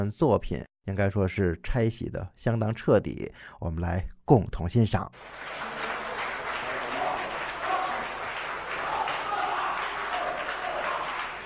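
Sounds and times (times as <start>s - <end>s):
speech: 0.0s - 5.8s
audience applause: 5.2s - 11.4s.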